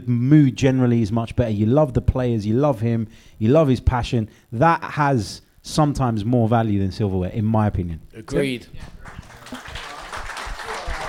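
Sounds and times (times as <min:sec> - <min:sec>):
speech: 0:00.0 - 0:09.6
audience clapping: 0:08.6 - 0:11.0.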